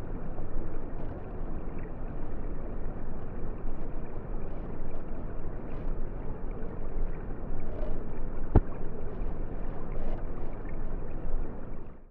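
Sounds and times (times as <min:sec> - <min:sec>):
underwater river sounds through a hydrophone: 0:00.0 - 0:12.0.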